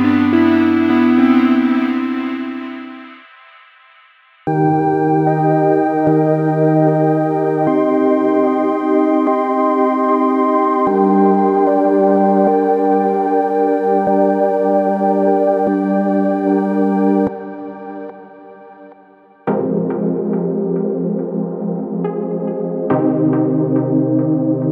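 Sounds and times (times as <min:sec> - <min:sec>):
ambient downtempo music: 0:00.0 - 0:24.6.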